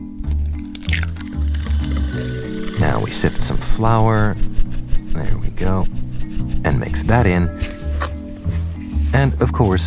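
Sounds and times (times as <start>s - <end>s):
eggshells cracking into butter and sugar: 0.2s - 4.0s
wet squish of egg contents dropping in: 0.4s - 3.6s
steady low drone: 1.2s - 7.1s
speech: 2.8s - 4.5s, 5.2s - 6.0s, 6.6s - 7.7s, 9.2s - 9.8s.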